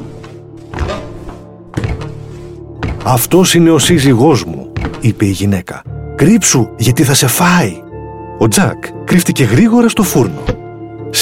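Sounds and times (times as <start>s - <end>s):
loud heavy footsteps: 0.0s - 3.5s, 4.6s - 5.3s
speech: 3.0s - 7.8s, 8.4s - 11.1s.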